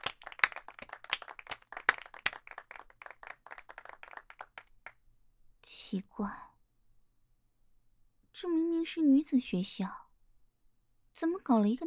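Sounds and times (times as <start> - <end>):
applause welcoming a teacher: 0.0 - 5.0
speech: 5.9 - 6.5, 8.4 - 10.0, 11.2 - 11.8.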